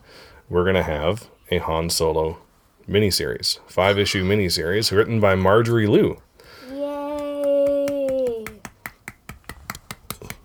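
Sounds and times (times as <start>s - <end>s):
speech: 0.5s - 6.3s
child clapping with fists: 6.7s - 10.4s.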